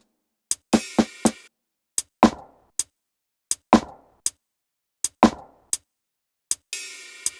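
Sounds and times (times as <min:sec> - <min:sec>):
music loop: 0:00.7 - 0:01.5, 0:06.8 - 0:07.3.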